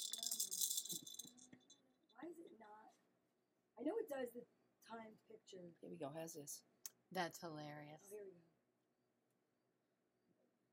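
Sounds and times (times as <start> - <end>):
maraca being shaken: 0.0 - 1.7
speech: 3.8 - 8.5.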